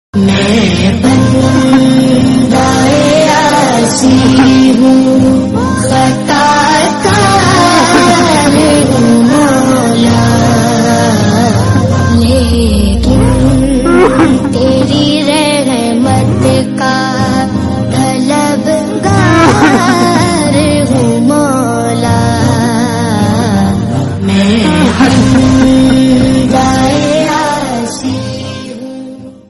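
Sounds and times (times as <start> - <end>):
islamic song: 0.2 - 29.4
laughter: 1.4 - 2.4, 3.9 - 4.9, 7.5 - 8.9, 13.8 - 15.0, 18.9 - 20.6, 24.4 - 27.1.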